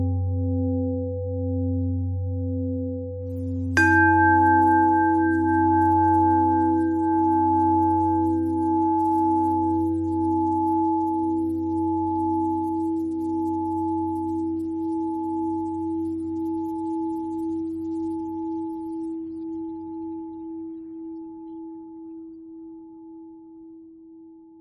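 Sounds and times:
pentatonic bell melody: 0.0 - 18.8.

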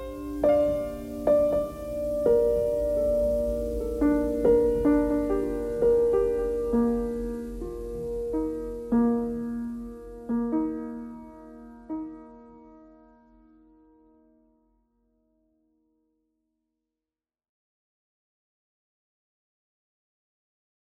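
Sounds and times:
piano noise: 0.0 - 13.9.

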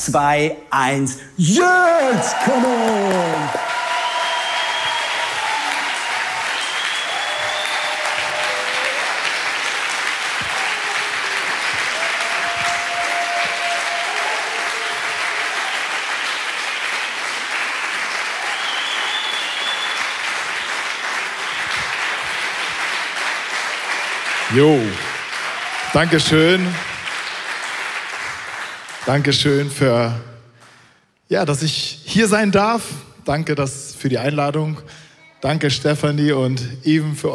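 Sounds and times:
speech: 0.0 - 3.8, 24.6 - 25.0, 26.0 - 26.9, 29.0 - 30.3, 31.3 - 37.3
audience applause: 1.5 - 29.6.

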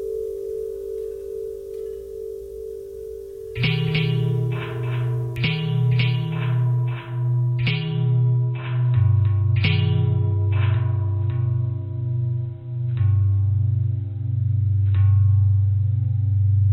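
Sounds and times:
long bell tones with bending: 0.0 - 16.6.

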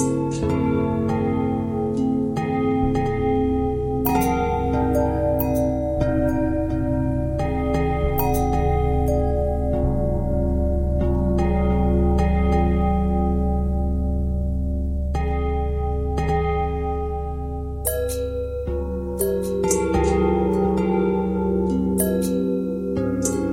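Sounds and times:
long bell thread pentatonic: 0.0 - 23.5.

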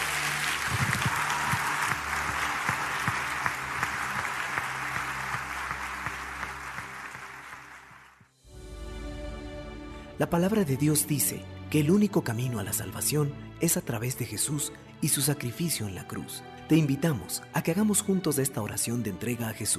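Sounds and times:
audience applause: 0.0 - 8.3
speech: 10.2 - 19.7.

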